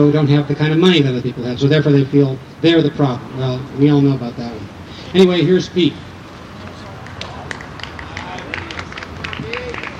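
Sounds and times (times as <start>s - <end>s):
speech: 0.0s - 6.1s
low murmur of crowd voices: 0.0s - 9.9s
audience clapping: 7.0s - 9.9s.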